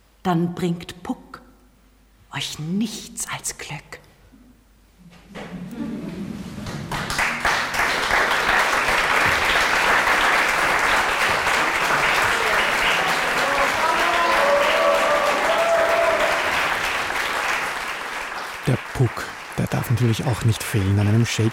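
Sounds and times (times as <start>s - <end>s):
speech: 0.2s - 1.2s, 2.4s - 4.0s, 20.0s - 21.5s
audience applause after a Shakespeare evening performance: 6.6s - 21.5s.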